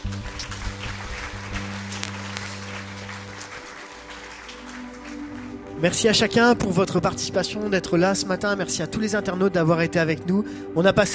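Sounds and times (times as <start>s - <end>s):
church congregation applauding and cheering at a French-language worship service: 0.0s - 7.1s
sustained low musical tones: 0.0s - 11.1s
speech: 5.8s - 11.1s.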